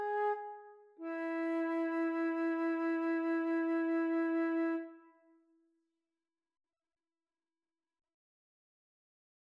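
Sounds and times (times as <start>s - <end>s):
flute duet: 0.0s - 5.2s.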